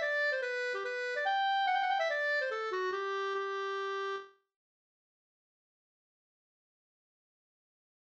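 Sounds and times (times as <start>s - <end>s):
mazurka: 0.0s - 4.3s.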